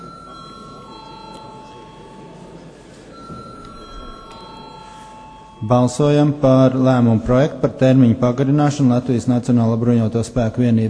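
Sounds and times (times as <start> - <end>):
parliament electric chamber bell ringing: 0.0 - 6.4
murmur of voices: 0.0 - 10.8
speech: 5.6 - 10.8.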